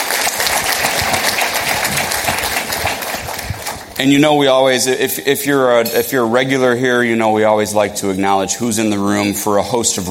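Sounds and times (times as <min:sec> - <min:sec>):
crowd applause: 0:00.0 - 0:04.0
speech: 0:04.0 - 0:10.0.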